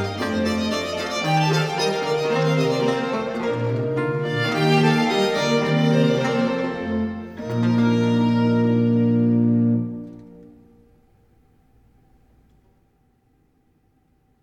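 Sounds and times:
classical sonata movement in C major: 0.0 - 11.4.

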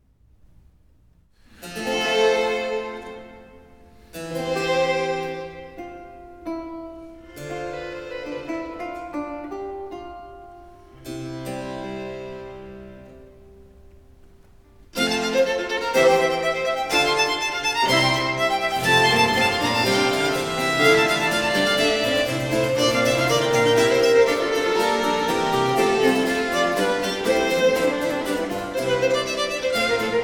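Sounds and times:
classical sonata in G major: 1.4 - 30.2.

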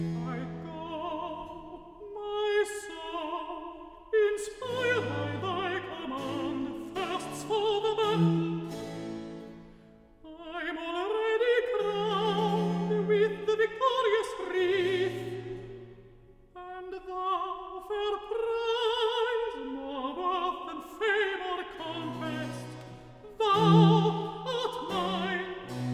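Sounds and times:
person singing recitative: 0.2 - 8.7, 10.3 - 15.7, 16.6 - 25.9.

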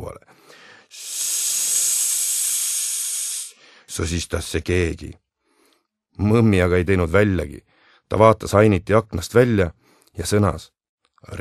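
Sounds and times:
snake-like hiss: 0.8 - 3.6
speech: 4.0 - 5.2, 6.2 - 11.3.

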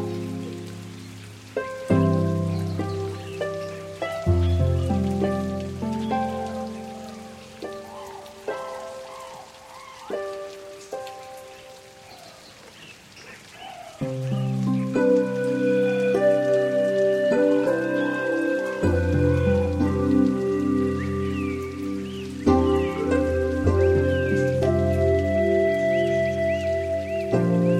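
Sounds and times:
waterbirds calling in a rain forest: 0.0 - 27.7.

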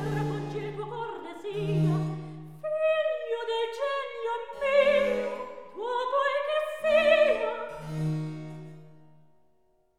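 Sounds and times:
soprano singing recitative: 0.0 - 7.8.

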